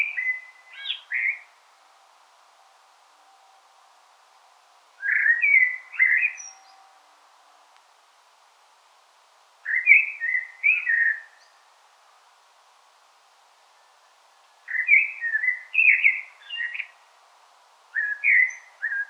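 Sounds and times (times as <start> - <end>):
common blackbird singing: 0.0 - 1.5, 5.0 - 6.8, 9.7 - 11.6, 14.7 - 17.0, 18.0 - 19.0.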